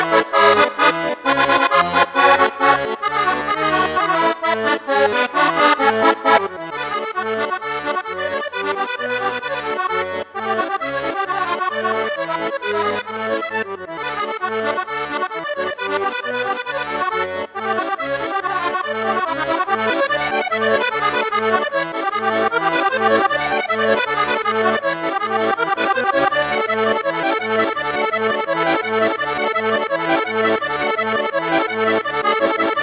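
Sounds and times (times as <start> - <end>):
accordion playing with three flute reed registers: 0.0 - 32.8.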